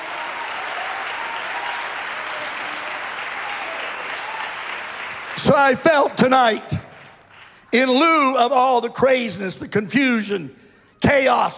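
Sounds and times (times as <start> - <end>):
audience clapping hands: 0.0 - 8.0
speech: 5.4 - 6.8, 7.7 - 11.5.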